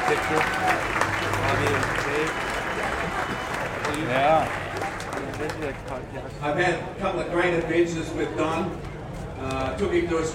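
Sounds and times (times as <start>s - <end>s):
audience applause: 0.0s - 6.0s
speech: 0.1s - 4.7s, 5.4s - 10.3s.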